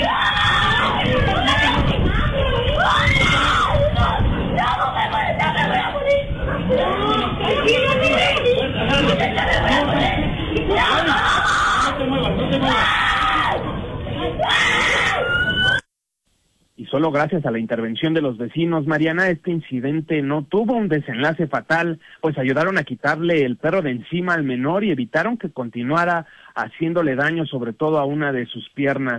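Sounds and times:
child screaming for help in panic: 0.0 - 7.4, 10.7 - 12.0, 14.4 - 15.8
frantic adults shouting: 0.0 - 15.8
speech: 17.0 - 29.1.

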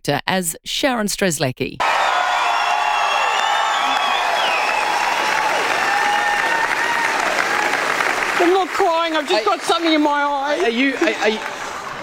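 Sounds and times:
speech: 0.0 - 1.9, 8.7 - 11.6
cheers and whoops: 1.8 - 8.6
standing ovation applause from a large crowd: 1.8 - 12.0.

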